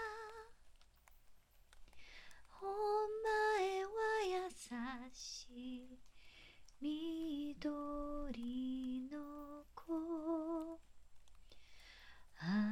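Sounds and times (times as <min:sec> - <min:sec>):
person singing lullabies: 0:00.0 - 0:00.7, 0:02.0 - 0:11.0, 0:12.2 - 0:12.7
rain: 0:00.0 - 0:12.7.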